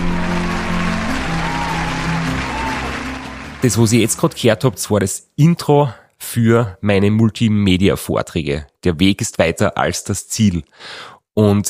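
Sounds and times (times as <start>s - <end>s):
audience applause: 0.0s - 4.4s
speech: 3.6s - 11.6s.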